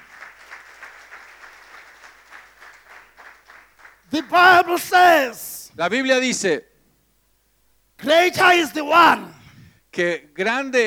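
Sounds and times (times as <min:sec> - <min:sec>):
audience applause: 0:00.0 - 0:04.7
speech: 0:04.1 - 0:06.7, 0:08.0 - 0:09.4, 0:10.0 - 0:10.8.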